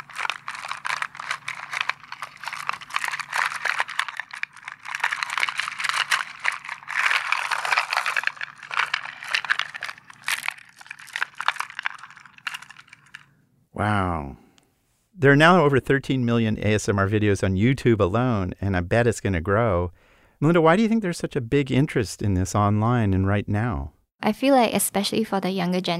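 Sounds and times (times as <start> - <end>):
pearls rattling inside a shaken box: 0.0 - 13.2
speech: 13.8 - 14.4, 15.2 - 25.9.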